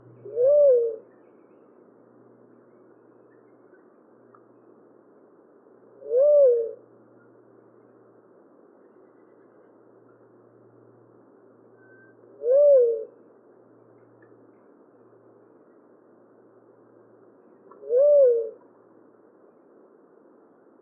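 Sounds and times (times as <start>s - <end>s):
Tolima dove Leptotila conoveri hooting coo: 0.0s - 1.1s, 6.0s - 6.9s, 12.4s - 13.2s, 17.7s - 18.6s.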